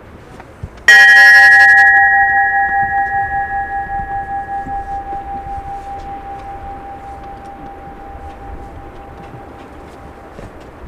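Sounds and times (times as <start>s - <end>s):
ship's bell ringing: 0.9s - 10.8s.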